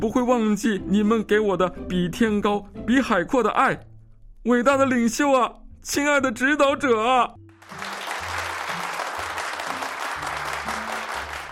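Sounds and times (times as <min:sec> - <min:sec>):
speech: 0:00.0 - 0:07.4
enthusiastic applause in a lecture hall: 0:07.5 - 0:11.4.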